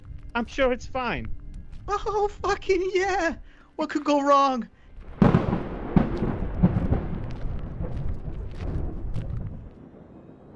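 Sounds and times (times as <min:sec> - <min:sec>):
speech: 0:00.4 - 0:04.8
thunder rumbling: 0:04.9 - 0:10.5.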